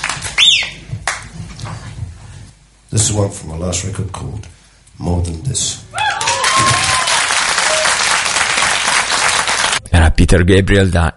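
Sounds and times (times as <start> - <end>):
audience applause at a live concert at Real World Studios: 0.0 - 1.3, 6.1 - 9.8
speech: 2.9 - 6.0, 10.2 - 11.1.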